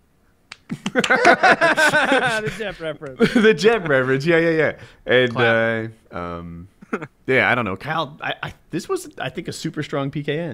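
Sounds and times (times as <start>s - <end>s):
people clapping: 0.5s - 2.3s
laughter: 0.7s - 4.3s, 6.8s - 7.1s
speech: 1.0s - 10.5s.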